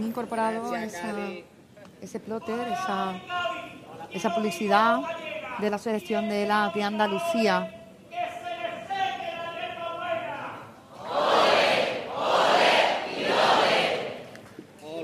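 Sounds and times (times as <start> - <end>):
speech: 0.0 - 7.8
carnival contest audience cheering a chirigota group: 11.0 - 14.2.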